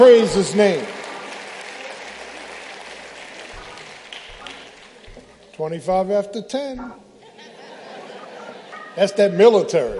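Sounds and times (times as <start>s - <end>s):
speech: 0.0s - 1.0s, 5.6s - 7.0s, 9.0s - 9.9s
audience applause: 0.0s - 5.6s
laughter: 7.1s - 9.9s.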